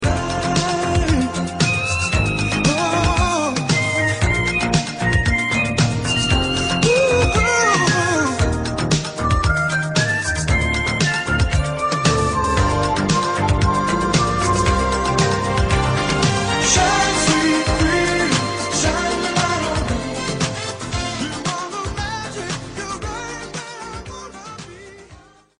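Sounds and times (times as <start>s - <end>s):
Yamaha DX7 synthesizer music: 0.0s - 25.2s.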